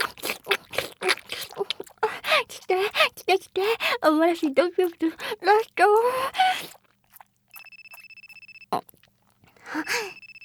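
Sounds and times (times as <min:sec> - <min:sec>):
speech: 0:02.5 - 0:06.7
telephone ringing: 0:07.6 - 0:08.7, 0:09.8 - 0:10.4.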